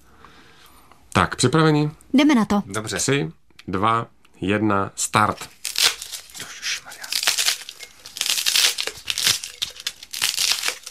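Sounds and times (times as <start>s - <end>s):
speech: 1.2s - 5.6s
polystyrene pieces being stuffed into a jar: 5.4s - 10.8s.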